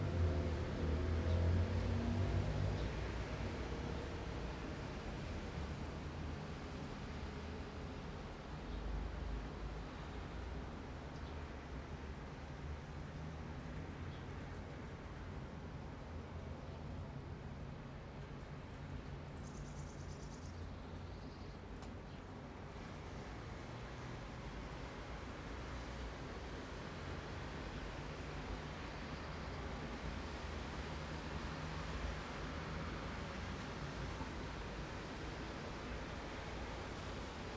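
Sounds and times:
evening rain in an urban city: 0.0 - 37.5.

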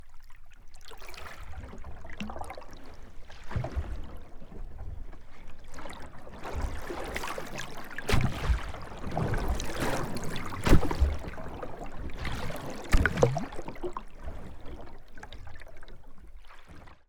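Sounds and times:
sea waves splashing and hitting a boat during a boat ride: 2.9 - 16.4.

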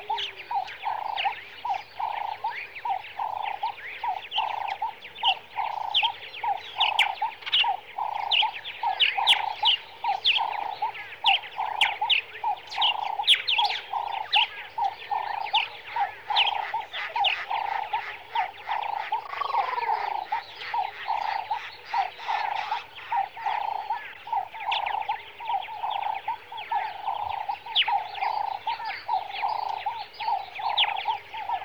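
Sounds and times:
birds in the early morning in Kenya: 0.0 - 31.6.

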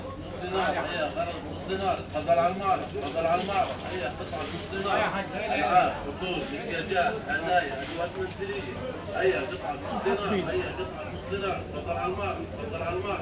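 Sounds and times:
market souk voices in Jordan: 0.0 - 13.2.

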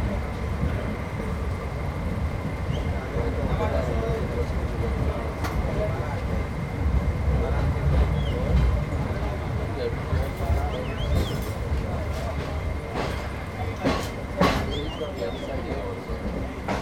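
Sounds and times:
Deccan train in India: 0.0 - 16.8.

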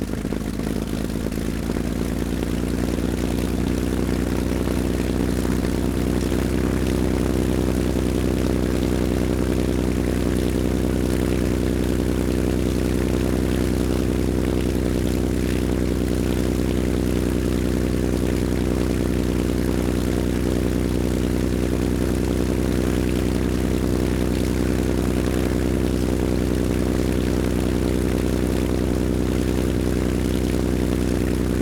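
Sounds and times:
stationary Messerschmitt Bf109 G4 engine startup idle and shutdown: 0.0 - 31.6.

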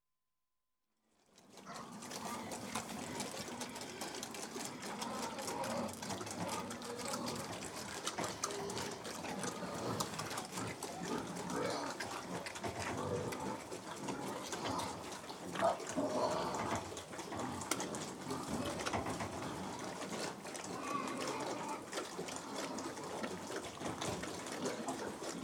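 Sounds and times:
group of pigs grunting and snuffling: 1.5 - 25.4.

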